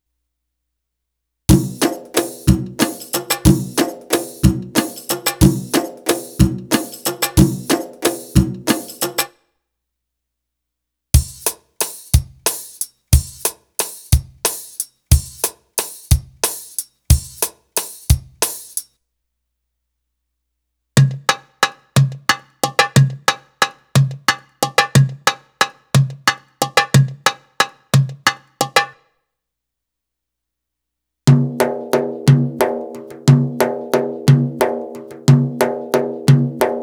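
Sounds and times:
Arabic rhythm percussion: 1.5s - 9.3s, 11.2s - 18.9s, 21.2s - 29.0s, 31.3s - 36.8s.

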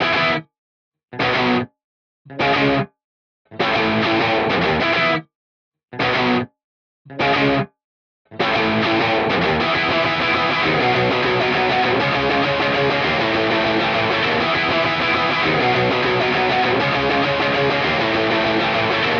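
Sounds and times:
punk alternative guitar loop: 0.0s - 0.4s, 1.2s - 1.7s, 2.4s - 2.8s, 3.6s - 5.2s, 6.0s - 6.4s, 7.2s - 7.6s, 8.3s - 19.1s.

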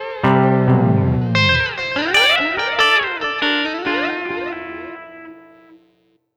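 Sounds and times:
guitar cluster in lounge atmosphere: 0.0s - 5.7s.

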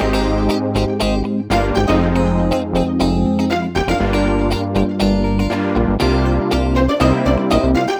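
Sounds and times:
backing track at 120bpm: 0.0s - 7.9s.

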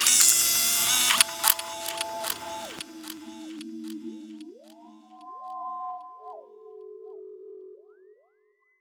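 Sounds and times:
machine auto shutoff: 0.0s - 4.5s.

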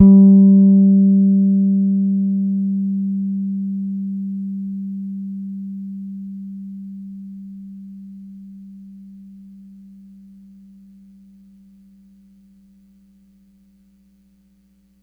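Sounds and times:
Pedulla Thunderbass bass guitar note G4 played hard: 0.0s - 5.6s.

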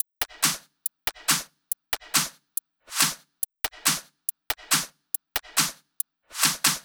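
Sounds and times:
drum loop at 140 bpm: 0.0s - 2.3s, 3.0s - 6.8s
hi-hat: 0.0s - 6.8s
clap: 0.2s - 6.8s.

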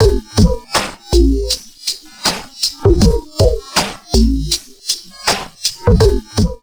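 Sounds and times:
crazy processed drum loops at 80 bpm: 0.0s - 6.6s.

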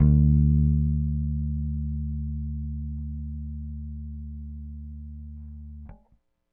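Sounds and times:
indie rock bass guitar: 0.0s - 6.2s.

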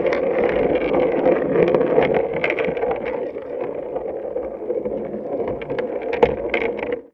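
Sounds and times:
marbles in a bath recorded with a contact mic: 0.0s - 7.1s.

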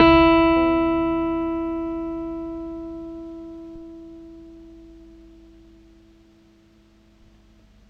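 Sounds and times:
bass E note on Stick: 0.0s - 5.4s.

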